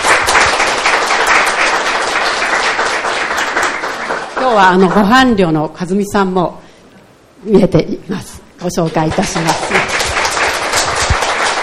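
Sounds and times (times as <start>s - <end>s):
audience applause: 0.0s - 5.1s, 8.9s - 11.6s
speech: 4.4s - 6.6s, 7.4s - 9.8s.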